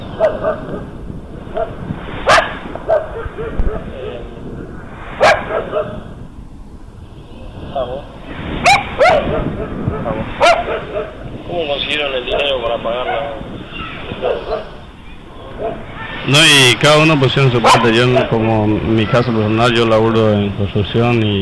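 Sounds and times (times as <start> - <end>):
dogs barking: 0.0 - 4.4, 5.1 - 6.2, 7.7 - 11.4, 12.1 - 16.2, 17.4 - 19.2
murmur of people talking: 0.0 - 21.4
speech: 0.2 - 1.9, 16.3 - 21.4.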